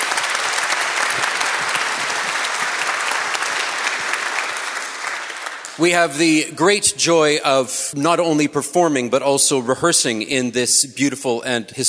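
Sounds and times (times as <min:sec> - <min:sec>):
audience applause: 0:00.0 - 0:06.1
speech: 0:05.8 - 0:11.8.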